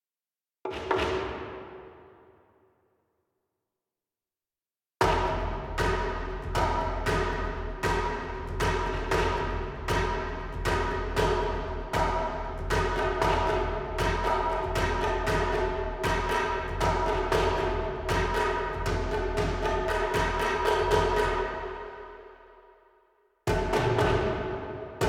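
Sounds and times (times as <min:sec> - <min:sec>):
heavy blades orchestral percussion: 0:05.0 - 0:22.3, 0:23.5 - 0:25.0.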